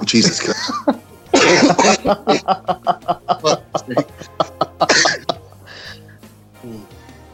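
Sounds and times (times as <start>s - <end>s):
laughter: 0.2s - 6.2s
person coughing: 1.4s - 2.0s, 3.4s - 5.4s.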